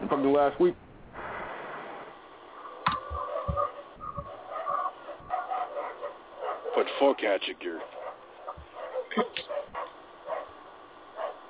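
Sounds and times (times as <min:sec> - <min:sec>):
speech: 0:00.2 - 0:00.8, 0:06.8 - 0:08.0
dog barking: 0:03.0 - 0:11.4.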